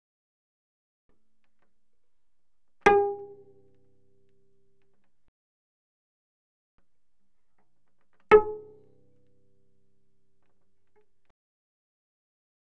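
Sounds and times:
cello pizzicato fortissimo on the D string: 2.8s - 4.2s, 8.3s - 10.2s.

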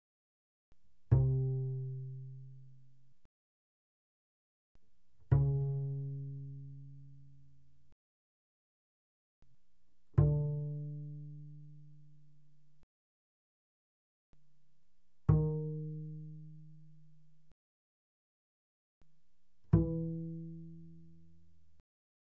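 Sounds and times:
double bass pizzicato fortissimo on the D string: 1.1s - 2.9s, 5.2s - 7.7s, 10.2s - 12.6s, 15.3s - 17.4s, 19.7s - 21.6s.

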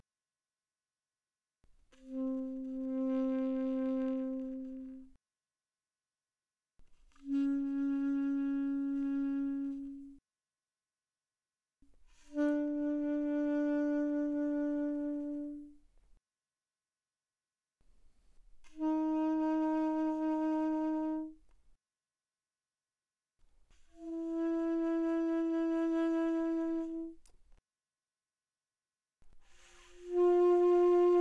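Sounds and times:
soft alto saxophone notes with vibrato: 2.0s - 5.2s, 7.2s - 10.2s, 12.3s - 15.8s, 18.8s - 21.4s, 24.0s - 27.2s, 29.8s - 31.1s.

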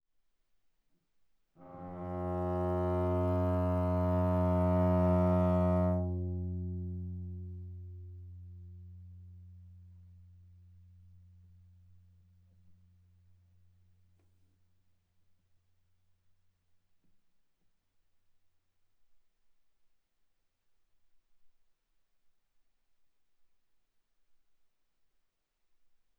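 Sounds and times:
viola bowed fortissimo on the G string: 1.6s - 9.1s.

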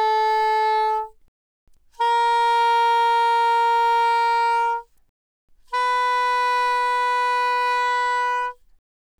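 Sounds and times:
soprano saxophone without vibrato: 0.0s - 1.2s, 2.0s - 4.9s, 5.6s - 8.6s.

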